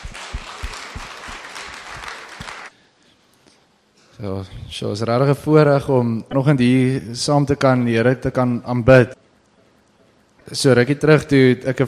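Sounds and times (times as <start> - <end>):
audience clapping: 0.0 - 2.8
speech: 4.2 - 9.2, 10.5 - 11.8.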